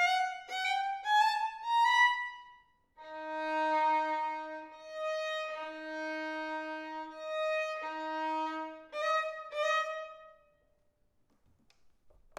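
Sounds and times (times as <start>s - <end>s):
violin in a children's orchestra: 0.0s - 10.5s.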